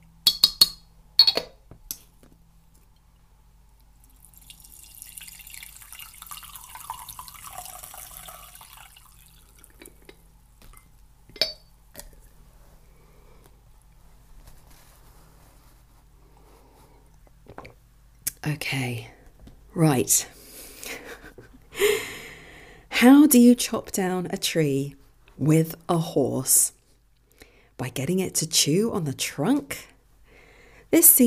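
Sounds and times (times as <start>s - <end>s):
tea swirling: 4.2s - 9.9s
spoon clinking against a cup of tea: 11.4s - 11.7s
speech: 18.5s - 19.1s, 19.8s - 20.3s, 23.0s - 26.8s, 27.8s - 29.9s, 30.9s - 31.2s.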